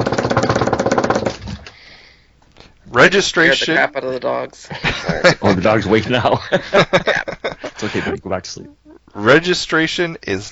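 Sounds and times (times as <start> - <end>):
drum roll sound effect: 0.0 - 1.7
speech: 3.0 - 10.4
laughter: 4.6 - 9.0.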